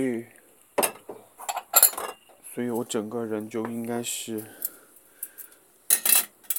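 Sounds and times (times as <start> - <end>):
speech: 0.0 - 0.4, 2.6 - 4.7
small cooking pot being handled: 0.8 - 2.3.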